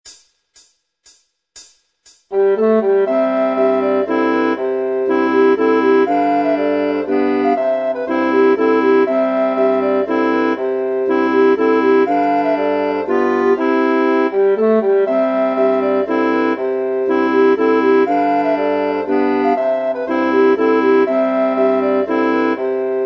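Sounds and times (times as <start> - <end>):
mazurka: 2.3 - 23.0.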